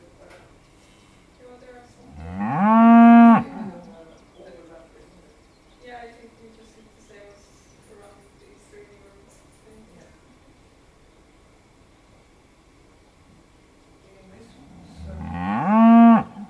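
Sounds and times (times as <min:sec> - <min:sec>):
cows: 0:02.0 - 0:04.0, 0:14.5 - 0:16.4.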